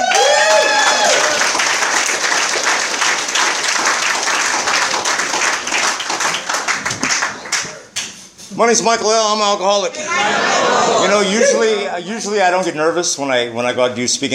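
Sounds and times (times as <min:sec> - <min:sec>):
audience applause welcoming the evening's main speaker: 0:00.0 - 0:07.9
speech: 0:08.6 - 0:14.3.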